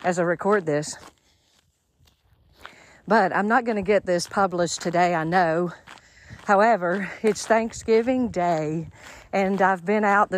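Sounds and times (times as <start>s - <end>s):
speech: 0.0s - 1.2s, 3.1s - 10.3s
footsteps crunching on dirt path: 0.0s - 10.3s.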